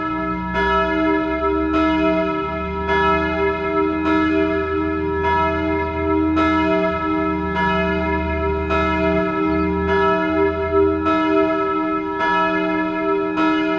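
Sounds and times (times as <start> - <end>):
church bells ringing a noon peal in Moudon: 0.0 - 13.7.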